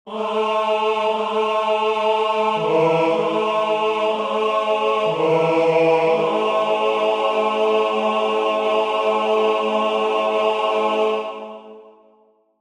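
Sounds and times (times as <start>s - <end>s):
tenor voice chanting: 0.1s - 11.8s.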